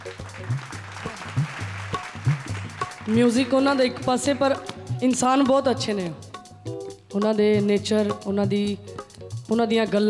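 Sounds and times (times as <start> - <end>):
audience applause in honor of a music director: 0.0 - 5.3
speech: 3.1 - 8.9, 9.5 - 10.0.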